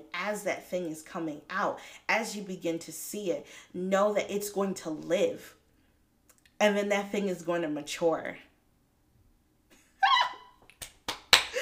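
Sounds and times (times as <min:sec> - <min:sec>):
speech: 0:00.2 - 0:05.6, 0:06.6 - 0:08.5
short high vocal exclamation: 0:10.0 - 0:10.4
hand clapping: 0:10.6 - 0:11.6.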